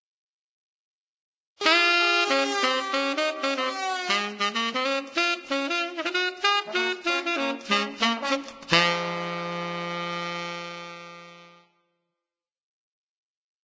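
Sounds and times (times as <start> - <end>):
saxophone duet: 1.6 - 11.8.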